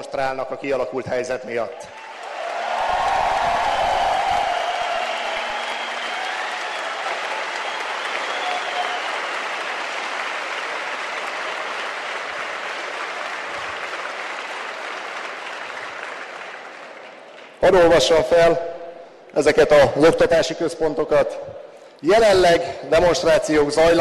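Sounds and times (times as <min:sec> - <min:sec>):
speech: 0:00.1 - 0:02.0, 0:17.6 - 0:18.7, 0:19.4 - 0:23.9
crowd applauding: 0:01.9 - 0:18.1.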